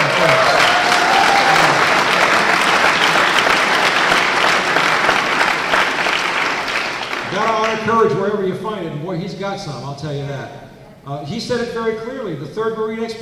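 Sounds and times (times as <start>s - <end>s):
audience applause: 0.0s - 8.1s
speech: 8.0s - 13.1s.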